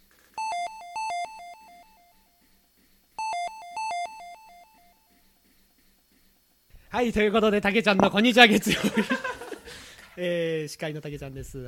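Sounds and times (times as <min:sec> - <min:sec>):
convenience store entrance chime electronic melody: 0:00.4 - 0:02.2, 0:03.2 - 0:05.0
speech: 0:07.0 - 0:09.4, 0:10.2 - 0:11.6
laughter: 0:08.4 - 0:10.0.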